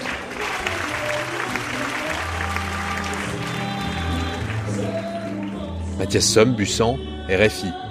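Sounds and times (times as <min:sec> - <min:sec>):
theatre audience applause: 0:00.0 - 0:05.7
speech: 0:06.0 - 0:07.8.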